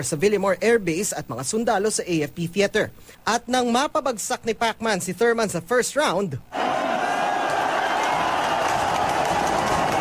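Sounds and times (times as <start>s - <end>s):
speech: 0.0s - 6.8s
crowd cheering at a boxing knockdown: 6.5s - 9.9s.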